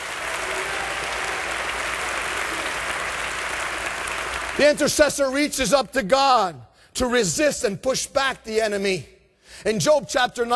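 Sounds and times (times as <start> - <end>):
audience applause: 0.0 - 4.9
speech: 4.6 - 10.5.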